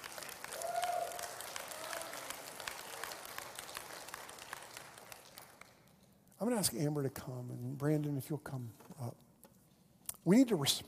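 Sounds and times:
audience clapping: 0.0s - 6.6s
speech: 6.4s - 9.3s, 10.2s - 10.8s.

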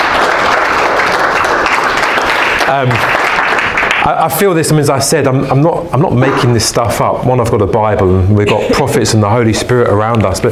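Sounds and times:
audience applause: 0.0s - 4.2s
speech: 2.7s - 3.2s, 4.0s - 10.5s.

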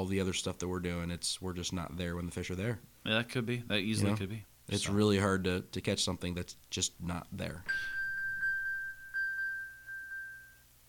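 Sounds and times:
speech: 0.0s - 8.0s
phone voice assistant chime: 7.7s - 10.6s.

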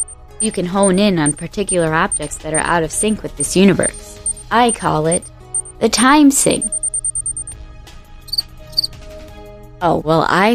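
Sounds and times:
electronic device short warbling chirps: 0.0s - 2.3s, 3.8s - 5.7s, 6.5s - 7.5s
electronic device high-pitched beeps: 0.0s - 5.7s, 6.4s - 7.5s, 8.3s - 8.9s
speech: 0.4s - 6.8s, 9.8s - 10.5s.

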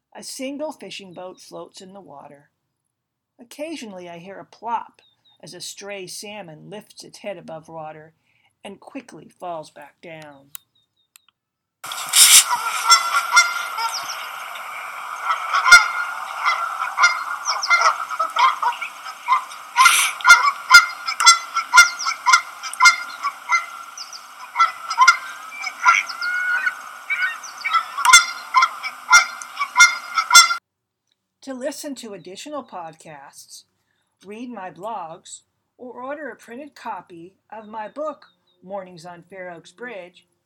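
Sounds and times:
speech: 0.2s - 2.5s, 3.4s - 10.6s, 31.7s - 40.3s
flock of birds honking loudly: 11.9s - 30.6s.

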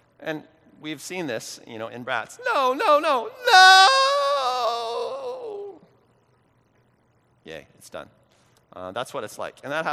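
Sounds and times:
speech: 0.2s - 4.2s, 7.4s - 9.9s
person imitating a wail of defeat: 2.4s - 5.9s.

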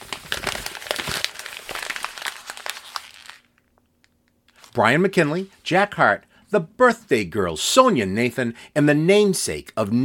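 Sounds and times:
paper rattling and crinkling: 0.0s - 3.5s
speech: 4.8s - 10.0s.

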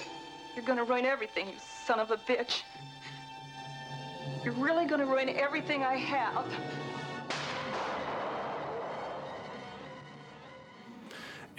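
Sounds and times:
speech: 0.6s - 2.9s, 4.4s - 6.9s
gunshot in a film scene: 7.3s - 9.9s.

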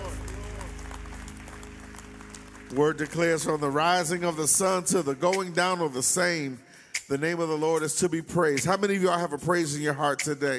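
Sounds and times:
audience clapping: 0.0s - 5.6s
speech: 2.7s - 10.5s.

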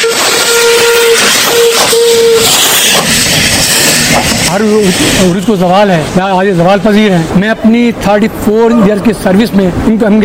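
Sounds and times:
steam locomotive whistle: 0.0s - 5.3s
steam locomotive steam hissing: 0.0s - 7.3s
speech: 4.6s - 10.2s.

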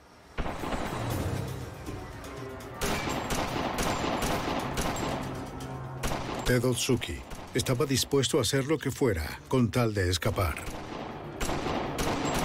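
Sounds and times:
gunfire: 0.4s - 1.4s, 2.8s - 7.8s, 10.6s - 12.4s
speech: 6.5s - 10.8s.

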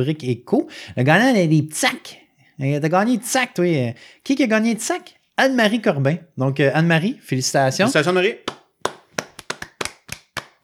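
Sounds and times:
speech: 0.0s - 8.6s
hands clapping: 7.8s - 10.6s.

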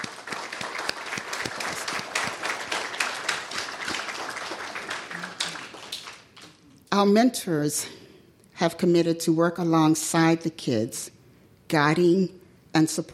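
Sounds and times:
audience applause: 0.0s - 6.6s
speech: 7.0s - 8.0s, 8.6s - 13.1s.

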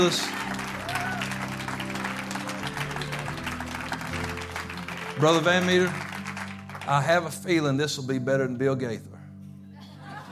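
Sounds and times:
speech: 0.0s - 0.5s, 5.2s - 6.0s, 6.9s - 9.1s
audience applause at a church service welcoming a preacher: 0.0s - 7.3s
sustained musical tones: 0.0s - 7.8s
laughter: 9.8s - 10.2s.

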